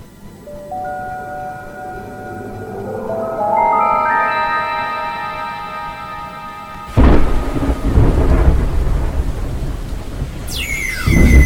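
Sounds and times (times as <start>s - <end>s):
swelling chord of sustained tones: 0.5s - 9.2s
heavy rain: 6.8s - 11.4s
thunder: 6.9s - 11.4s.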